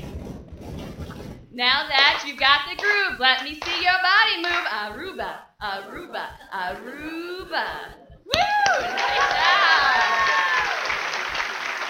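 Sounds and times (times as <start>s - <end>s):
speech: 1.6s - 10.3s
crowd cheering and clapping after a chanted cheer routine: 2.0s - 4.8s, 8.3s - 11.8s
high whoop: 8.3s - 11.3s.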